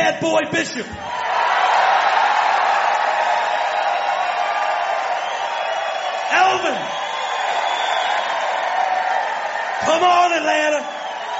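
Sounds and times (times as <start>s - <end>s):
speech: 0.2s - 1.3s, 6.5s - 7.0s, 9.8s - 11.0s
large live audience clapping and cheering: 1.0s - 11.3s.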